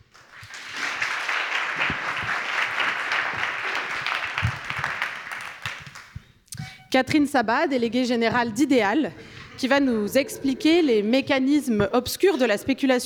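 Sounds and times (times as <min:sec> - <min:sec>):
audience applause: 0:00.0 - 0:06.2
speech: 0:06.9 - 0:13.0.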